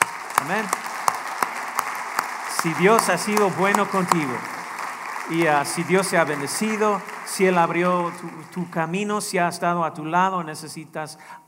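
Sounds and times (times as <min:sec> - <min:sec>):
audience applause: 0:00.0 - 0:09.1
speech: 0:00.5 - 0:00.8, 0:02.6 - 0:04.6, 0:05.3 - 0:11.4.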